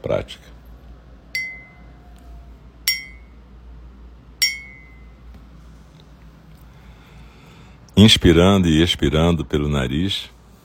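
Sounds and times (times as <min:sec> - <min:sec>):
speech: 0:00.0 - 0:00.6, 0:08.0 - 0:10.4
struck glass clinking as improvised meditation bell: 0:01.4 - 0:01.8, 0:02.9 - 0:03.3, 0:04.4 - 0:05.1.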